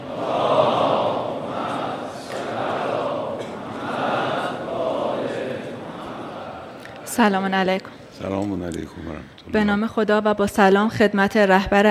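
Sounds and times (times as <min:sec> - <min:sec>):
audience reciting a salawat in unison: 0:00.0 - 0:08.2
speech: 0:07.2 - 0:11.8.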